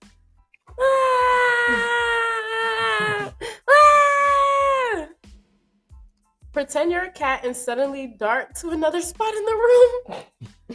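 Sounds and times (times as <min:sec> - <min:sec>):
person imitating crying baby: 0:00.8 - 0:05.1
speech: 0:06.6 - 0:10.7.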